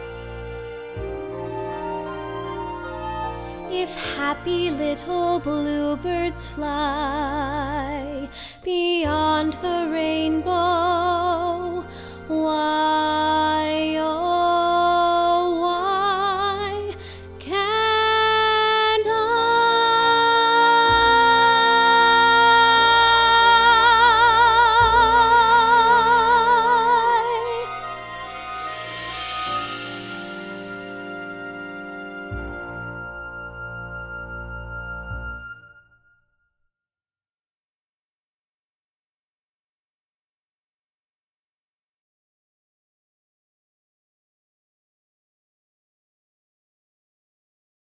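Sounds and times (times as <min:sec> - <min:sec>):
complete song tracks with guide vocals: 0:01.8 - 0:29.8.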